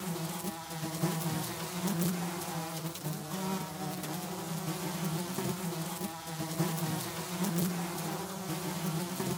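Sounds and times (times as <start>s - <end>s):
swarm of flies buzzing: 0.0s - 9.3s.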